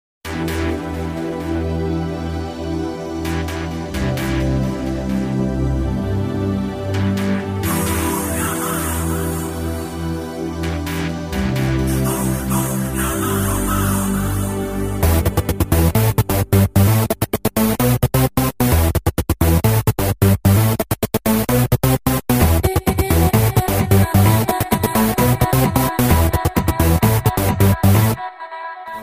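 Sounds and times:
techno music: 0.2s - 29.0s.

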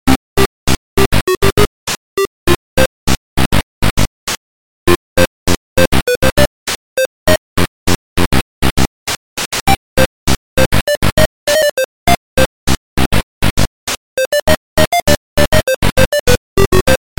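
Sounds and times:
8-bit music: 0.1s - 3.6s, 4.9s - 8.9s, 9.7s - 17.0s.

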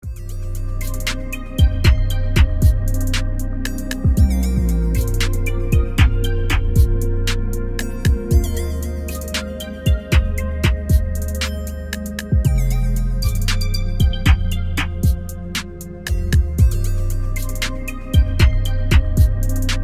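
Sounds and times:
trap remix: 0.0s - 19.8s.

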